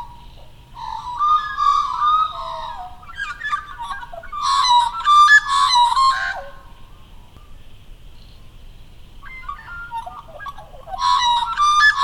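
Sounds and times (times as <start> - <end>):
magpie warbling calls: 0.0 - 6.8, 9.2 - 12.0.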